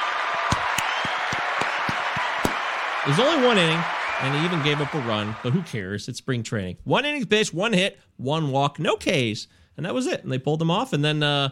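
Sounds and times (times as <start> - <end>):
round of applause: 0.0 - 5.8
speech: 3.0 - 11.5.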